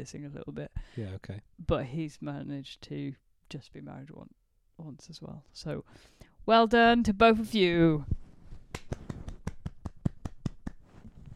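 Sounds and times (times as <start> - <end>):
speech: 0.0 - 9.0
one person clapping hands: 8.7 - 10.9.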